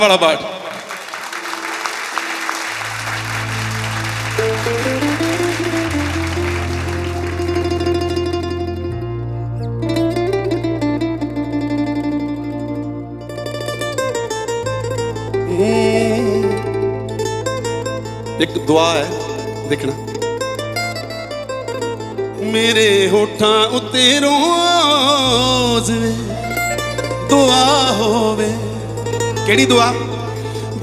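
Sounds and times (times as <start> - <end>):
speech: 0.0 - 0.6, 18.4 - 20.1, 22.5 - 26.3, 27.3 - 28.7, 29.5 - 30.0
audience applause at a stage show: 0.0 - 8.5
live music with sustained low drone tones: 1.5 - 30.8.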